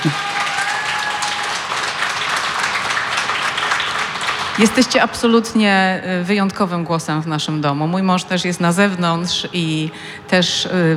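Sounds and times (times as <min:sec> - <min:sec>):
speech: 0:00.0 - 0:00.3, 0:04.6 - 0:10.9
audience applause: 0:00.0 - 0:05.0.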